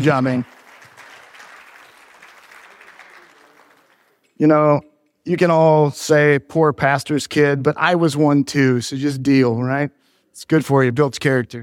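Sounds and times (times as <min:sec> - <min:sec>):
speech: 0:00.0 - 0:00.6, 0:04.4 - 0:11.6
audience applause: 0:00.0 - 0:04.2.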